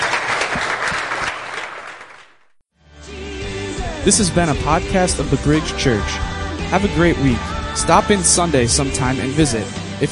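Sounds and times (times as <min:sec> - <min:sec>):
audience applause: 0:00.0 - 0:02.5
speech: 0:04.0 - 0:10.1.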